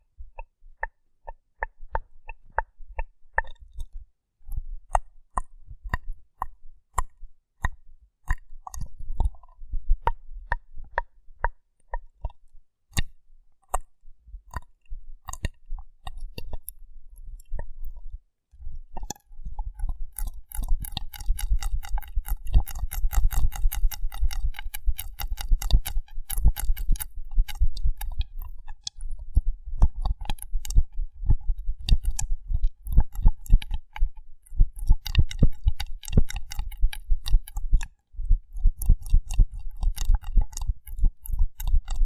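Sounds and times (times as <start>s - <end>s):
wet clicky squelches and snaps: 0.4s - 16.8s, 19.0s - 42.0s.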